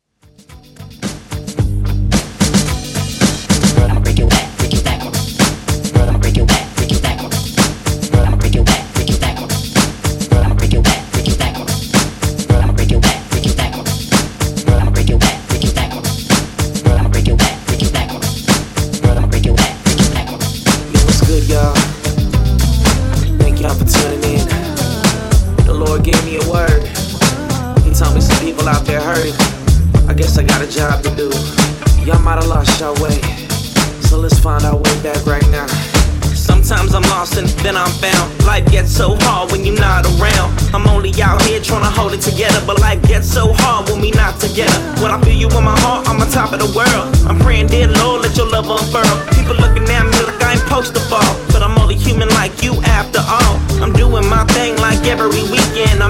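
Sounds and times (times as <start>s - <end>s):
extended mix music track at 110 BPM: 0.2s - 56.0s.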